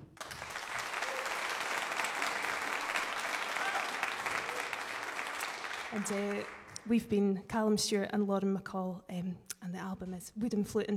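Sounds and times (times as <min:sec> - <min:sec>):
audience applause: 0:00.0 - 0:06.8
speech: 0:05.9 - 0:10.9.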